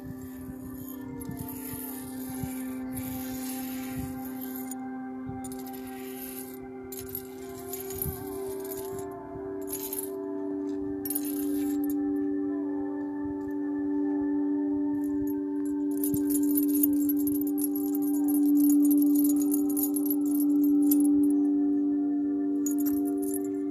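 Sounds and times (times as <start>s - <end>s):
Tibetan singing bowls humming: 0.0s - 23.6s
light metallic jingles: 0.1s - 4.8s, 5.4s - 10.2s, 11.0s - 12.0s, 15.2s - 21.3s, 22.6s - 23.6s.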